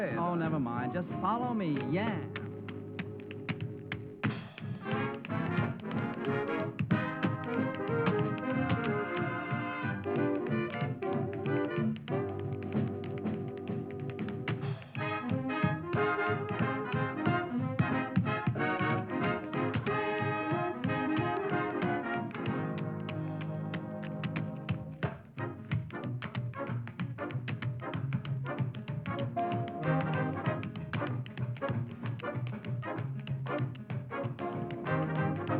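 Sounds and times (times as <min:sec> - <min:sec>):
speech: 0:00.0 - 0:02.4
lively full band accompaniment: 0:00.0 - 0:03.4, 0:04.0 - 0:25.6, 0:29.2 - 0:30.8, 0:34.1 - 0:35.5
tap dancing steps: 0:00.0 - 0:35.5.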